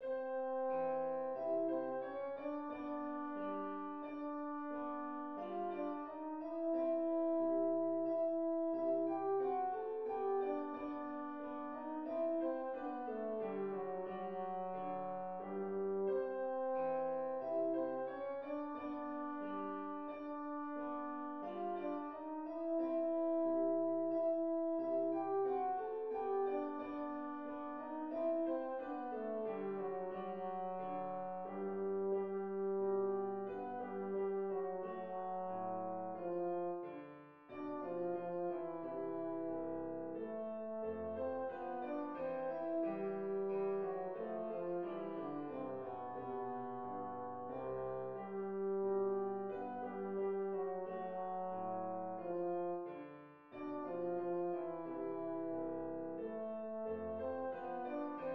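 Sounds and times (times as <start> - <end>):
minuet in a major key: 0.0 - 58.3.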